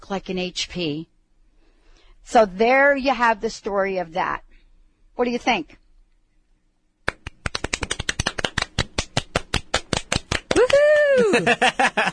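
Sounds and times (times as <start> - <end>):
speech: 0.1 - 1.1, 2.2 - 4.4, 5.2 - 5.8, 11.3 - 12.1
small group clapping: 7.1 - 11.7
high voice cheering: 10.6 - 11.5
laughter: 10.8 - 12.1.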